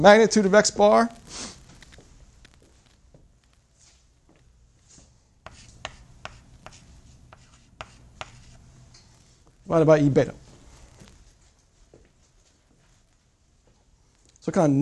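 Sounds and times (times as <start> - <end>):
speech: 0.0 - 1.6, 9.7 - 10.4, 14.5 - 14.8
pen scratching while writing: 5.5 - 8.6.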